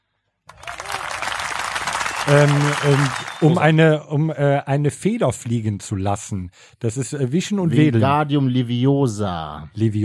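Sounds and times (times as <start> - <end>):
applause: 0.5 - 3.8
speech: 2.3 - 10.0.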